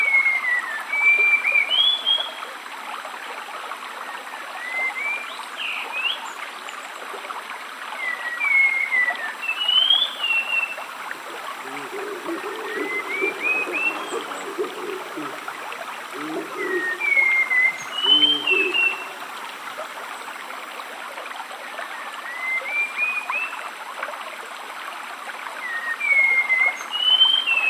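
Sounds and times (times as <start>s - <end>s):
rainforest stream flowing: 0.0s - 27.6s
spot-winged thrush singing: 11.2s - 19.4s.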